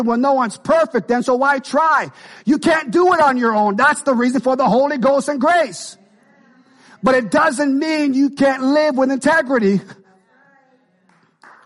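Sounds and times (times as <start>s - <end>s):
speech: 0.0s - 6.0s, 7.0s - 10.0s
audience clapping: 11.1s - 11.6s.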